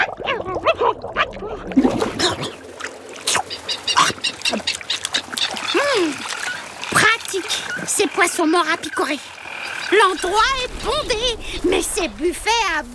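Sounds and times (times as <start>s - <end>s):
water splashes: 0.0s - 12.9s
large seabirds squabbling noisily on the water: 3.2s - 11.6s
speech: 8.4s - 9.3s, 9.9s - 12.9s.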